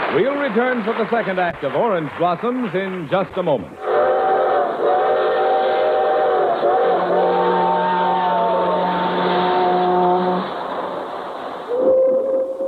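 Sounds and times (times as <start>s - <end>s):
speech: 0.1s - 4.1s
freight train whistles: 3.8s - 12.6s.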